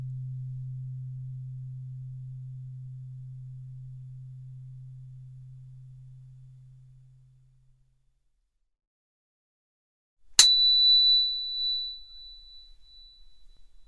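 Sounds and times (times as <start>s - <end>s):
low sine hum: 0.0s - 7.3s, 10.4s - 13.8s
sharp click: 10.4s - 10.7s.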